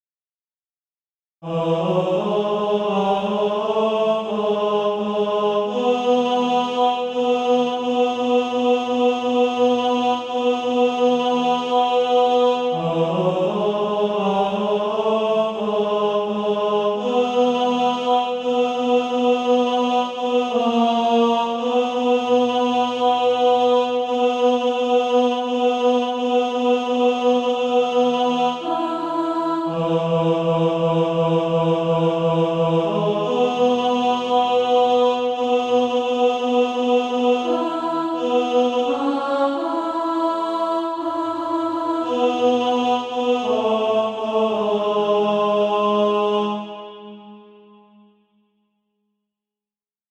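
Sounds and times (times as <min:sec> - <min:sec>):
tenor SATB practice part: 0:01.4 - 0:47.4.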